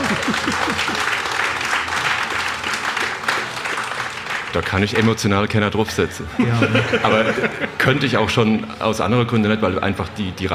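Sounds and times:
laughter: 0.0 - 3.7, 6.0 - 8.7
audience applause: 0.0 - 5.2
speech: 4.5 - 10.5.

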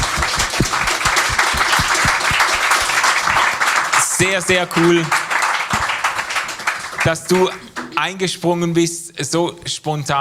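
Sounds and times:
applause: 0.0 - 8.0
speech: 4.2 - 5.2, 7.0 - 10.1.

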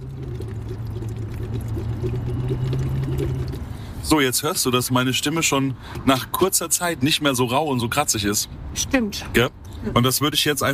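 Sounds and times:
air blown into a bottle of water bubbling: 0.0 - 3.8
speech: 4.0 - 10.7.

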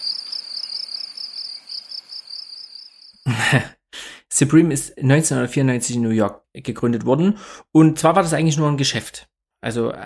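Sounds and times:
cricket chirping effect: 0.0 - 3.3
speech: 3.3 - 3.8, 4.4 - 10.0.

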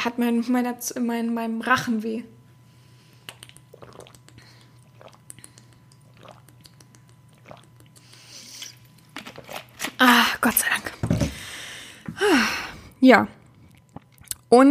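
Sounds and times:
speech: 0.0 - 2.4, 10.4 - 10.9, 13.0 - 13.4
mouth clicks: 3.2 - 8.7
person sipping and swallowing a drink: 3.2 - 9.0, 13.5 - 14.5.

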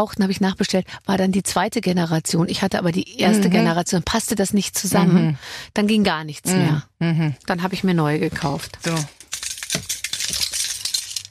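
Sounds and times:
speech: 0.0 - 9.5, 10.3 - 10.5
keyring with heavy brass pendant jingling: 8.9 - 11.2.

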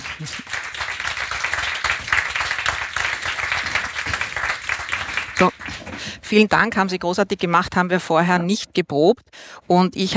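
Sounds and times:
crowd clapping: 0.0 - 6.1
speech: 0.2 - 0.6, 5.4 - 10.1.

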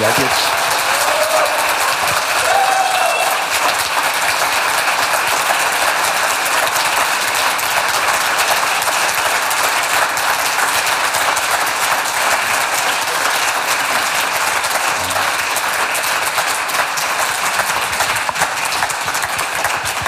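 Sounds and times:
audience applause: 0.0 - 20.0.

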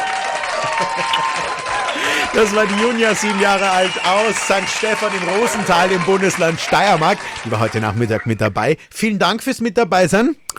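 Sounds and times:
applause sound effect: 0.0 - 8.6
laughter: 0.0 - 8.8
speech: 0.8 - 1.4, 2.3 - 10.5.

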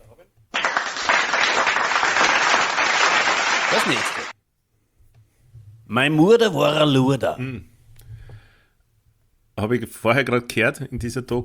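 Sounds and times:
applause: 0.5 - 4.4
speech: 3.7 - 4.2, 5.9 - 7.7, 9.6 - 11.4.

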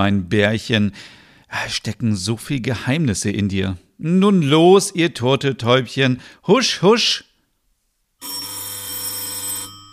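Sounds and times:
speech: 0.0 - 7.3
doorbell ringing: 8.2 - 9.9.

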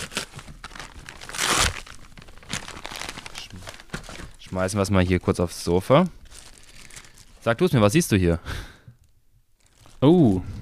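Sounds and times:
package packaging being crinkled and torn open: 0.0 - 4.9, 6.2 - 7.6, 9.6 - 10.6
speech: 4.5 - 6.2, 7.4 - 8.6, 10.0 - 10.6.

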